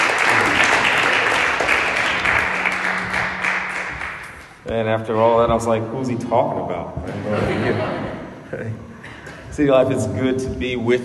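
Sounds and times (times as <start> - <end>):
church congregation applause: 0.0 - 4.6
speech: 4.7 - 8.9, 9.6 - 11.0
laughter: 7.1 - 10.2.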